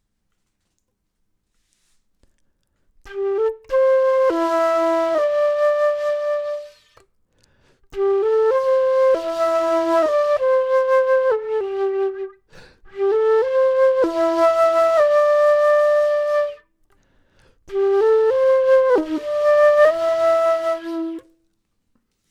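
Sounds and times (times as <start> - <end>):
flute: 3.0 - 7.1, 7.9 - 16.7, 17.6 - 21.5.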